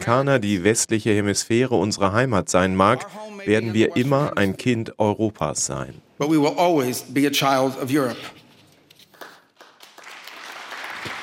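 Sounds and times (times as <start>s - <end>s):
speech: 0.0s - 8.4s
hesitant applause after a speech: 9.2s - 11.2s.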